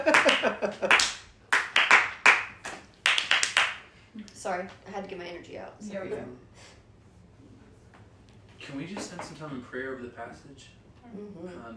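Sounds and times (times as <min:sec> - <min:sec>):
speech: 0:00.0 - 0:01.2, 0:04.4 - 0:06.8, 0:08.7 - 0:11.7
slow clap: 0:00.0 - 0:03.8.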